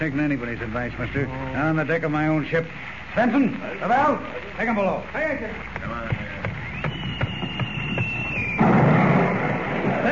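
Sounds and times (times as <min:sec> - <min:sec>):
speech: 0:00.0 - 0:06.9
artillery shell fired across a ship's bow: 0:08.5 - 0:10.1.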